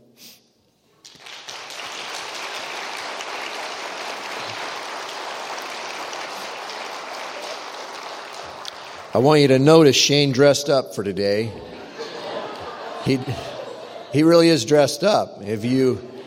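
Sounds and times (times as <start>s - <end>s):
audience applause welcoming a guest: 1.0s - 9.9s
speech: 9.2s - 11.7s, 13.1s - 13.5s, 14.1s - 16.1s
laughter: 11.2s - 16.2s.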